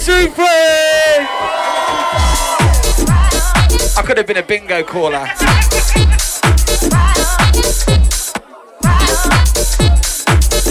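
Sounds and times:
speech: 0.0 - 1.7, 4.0 - 7.1
loud crowd cheering, shouting and whooping: 1.0 - 3.8, 5.1 - 7.6
laughter: 4.0 - 9.6.

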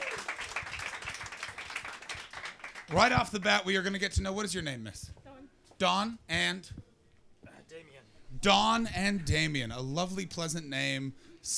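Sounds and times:
audience applause: 0.0 - 3.2
speech: 2.9 - 5.2, 5.8 - 6.8, 8.4 - 11.5.

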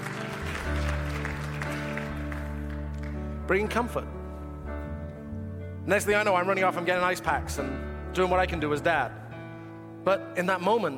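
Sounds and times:
audience clapping: 0.0 - 3.7
speech: 3.5 - 4.2, 5.8 - 9.2, 10.0 - 10.9.

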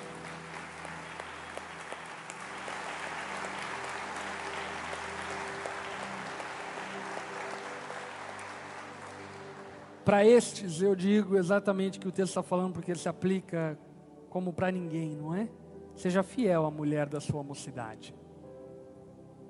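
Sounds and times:
audience applauding: 0.0 - 10.0
speech: 10.1 - 18.2.

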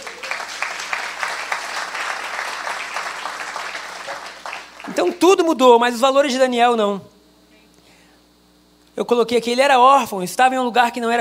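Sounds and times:
audience applauding: 0.0 - 5.5
speech: 5.0 - 7.1, 9.0 - 11.1.

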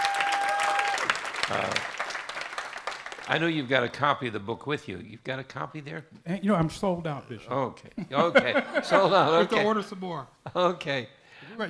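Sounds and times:
audience applause congratulating a guest: 0.0 - 3.7
speech: 1.5 - 1.9, 3.3 - 11.6
laughter: 8.0 - 9.8.

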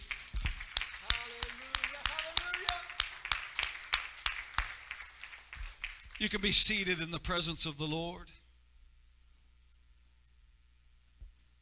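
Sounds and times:
audience clapping hands: 0.0 - 8.2
speech: 6.2 - 8.4.

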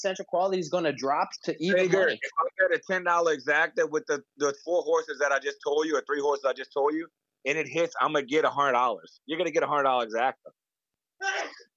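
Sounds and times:
speech: 0.0 - 10.6
sneeze: 11.2 - 11.7.

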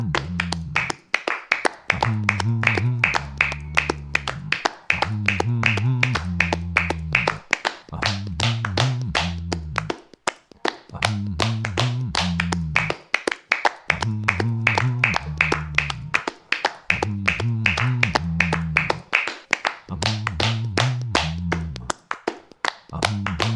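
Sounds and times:
low tuneful bass pattern: 0.0 - 1.0, 1.9 - 10.0, 10.9 - 13.0, 13.9 - 16.2, 16.9 - 19.1, 19.9 - 22.0, 22.9 - 23.5
hands clapping in rhythm: 0.0 - 23.5.

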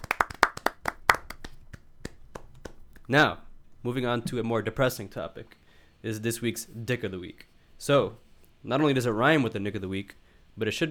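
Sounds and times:
clapping: 0.0 - 3.1
speech: 3.1 - 10.8.

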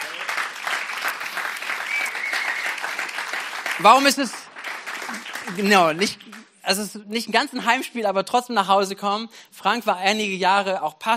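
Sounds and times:
audience applause: 0.0 - 6.5
speech: 3.8 - 4.4, 5.5 - 11.1.

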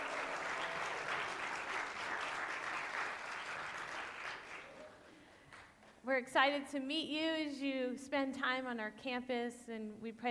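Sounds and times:
crowd applauding: 0.0 - 5.7
speech: 6.1 - 10.3.

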